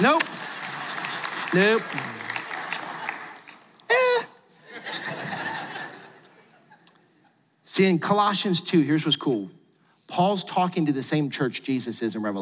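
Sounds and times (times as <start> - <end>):
speech: 0.0 - 0.4, 1.5 - 2.2, 7.8 - 12.4
scattered audience clapping: 0.0 - 4.3
audience laughing and chuckling: 0.5 - 3.4, 4.6 - 7.0.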